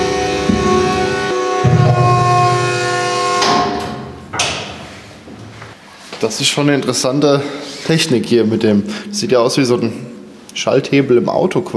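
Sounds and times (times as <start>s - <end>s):
sustained mechanical rumble and tonal hum: 0.0s - 4.8s
heavy metal bunker pressure doors grinding and scraping open: 0.0s - 5.2s
speech: 6.2s - 11.7s.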